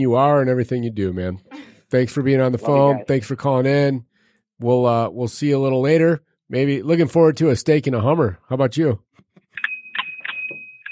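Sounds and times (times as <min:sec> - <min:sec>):
speech: 0:00.0 - 0:09.1
bell ringing: 0:09.6 - 0:10.9.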